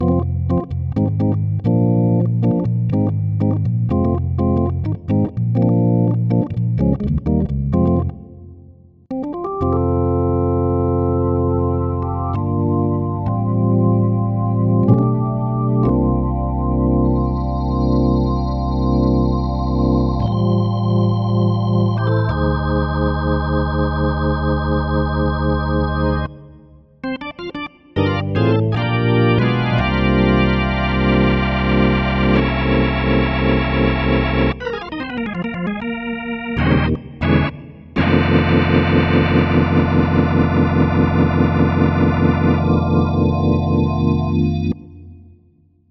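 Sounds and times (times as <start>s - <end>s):
organ: 0.0s - 8.4s, 9.1s - 45.1s.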